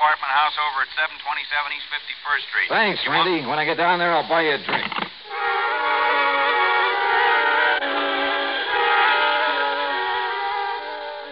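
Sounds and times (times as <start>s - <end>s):
speech: 0.1s - 5.0s
train whistle blowing: 5.2s - 11.3s.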